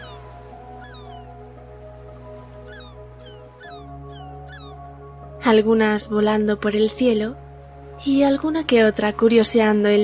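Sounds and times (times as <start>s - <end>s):
seagulls calling: 0.0s - 5.3s
speech: 5.4s - 7.4s, 8.0s - 10.0s.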